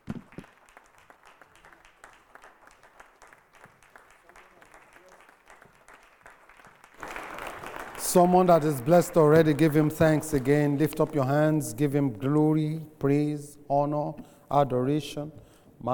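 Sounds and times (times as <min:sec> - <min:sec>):
church congregation clapping to welcome a preacher: 0:00.0 - 0:12.7
speech: 0:08.1 - 0:15.9.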